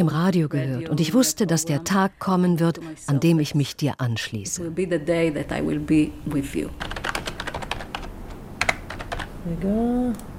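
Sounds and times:
speech: 0.0s - 7.0s, 9.4s - 10.3s
typing an e-mail on a computer keyboard in a new office: 6.8s - 9.3s.

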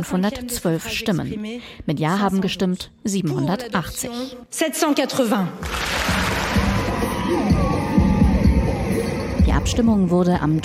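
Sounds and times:
speech: 0.0s - 6.7s, 7.3s - 7.7s, 9.5s - 10.6s
crowd cheering after vote result: 5.6s - 9.5s.

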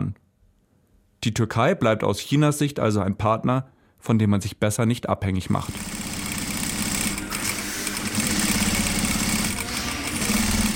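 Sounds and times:
speech: 1.2s - 6.0s
sewing machine needle rattling: 5.7s - 10.7s.

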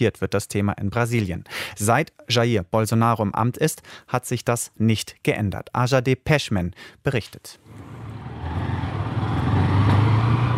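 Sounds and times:
speech: 0.0s - 7.9s
motorcycle riding over bumpy streets: 7.7s - 10.5s.

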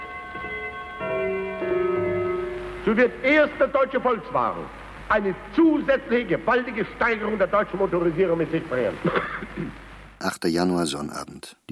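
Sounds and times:
Kienzler clock gong striking the half hour: 0.0s - 3.2s
speech: 2.8s - 11.6s.

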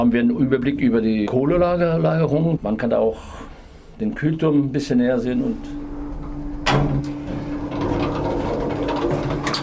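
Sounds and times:
speech: 0.0s - 5.8s
power plant lift moving up toward the boiler roof: 5.2s - 9.6s
power plant lift starting with a thud: 6.0s - 9.6s.

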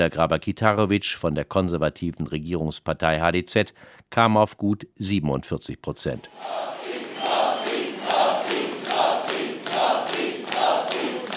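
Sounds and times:
speech: 0.0s - 6.8s
crowd of supporters cheering and chanting: 6.2s - 11.3s.

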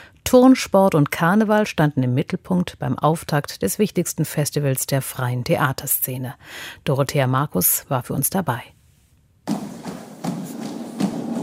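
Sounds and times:
speech: 0.3s - 8.8s
Düsseldorf city carnival dance guard stomping in military lockstep: 9.5s - 11.4s.

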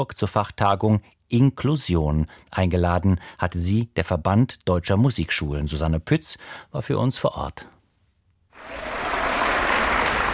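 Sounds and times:
speech: 0.0s - 7.8s
audience clapping for a music school orchestra in Limburg: 8.6s - 10.3s.

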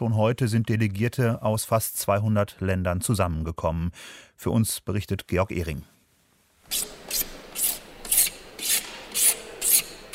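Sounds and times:
speech: 0.0s - 5.9s
filing in exhibition halls being set up for a summit: 6.7s - 10.1s.

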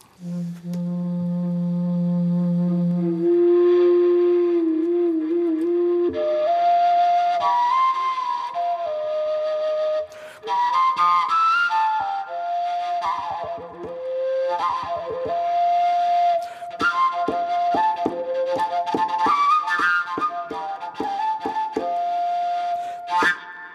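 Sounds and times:
overtone flute made from plastic tube playing: 0.0s - 23.7s.

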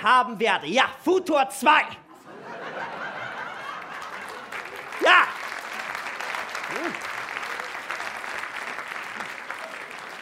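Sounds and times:
speech: 0.0s - 2.0s, 6.7s - 7.0s
laughter: 2.1s - 5.4s
audience applause: 3.0s - 10.2s.

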